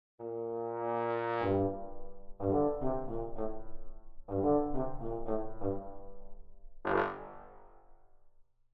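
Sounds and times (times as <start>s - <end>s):
trombone: 0.2s - 6.2s, 6.8s - 7.8s.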